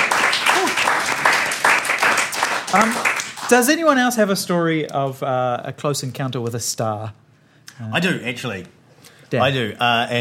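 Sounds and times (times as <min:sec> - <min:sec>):
round of applause: 0:00.0 - 0:03.6
speech: 0:02.7 - 0:07.2, 0:07.8 - 0:10.1.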